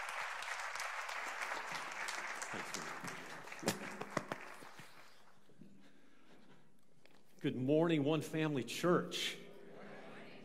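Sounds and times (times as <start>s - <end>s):
church congregation clapping in welcome for a visiting pastor: 0.0s - 5.4s
speech: 2.5s - 3.8s, 7.4s - 9.4s.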